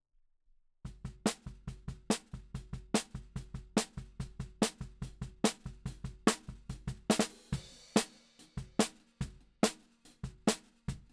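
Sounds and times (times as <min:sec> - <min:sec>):
snare drum: 0:00.9 - 0:11.1.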